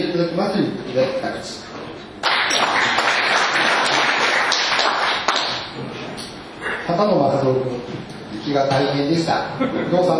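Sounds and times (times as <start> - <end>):
speech: 0.2 - 1.8, 7.0 - 10.1
applause: 2.2 - 5.7.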